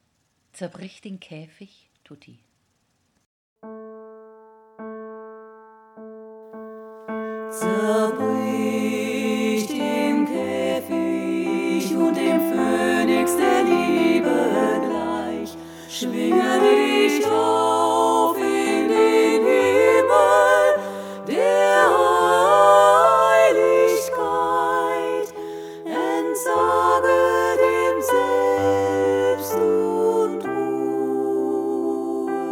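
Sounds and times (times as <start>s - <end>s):
choral music tutti: 7.2s - 32.5s.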